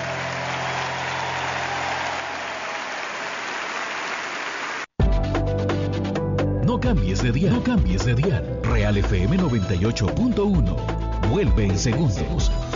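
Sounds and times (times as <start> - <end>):
music: 0.0 - 2.1, 5.0 - 12.7
audience applause: 0.0 - 5.0
speech: 6.8 - 12.7.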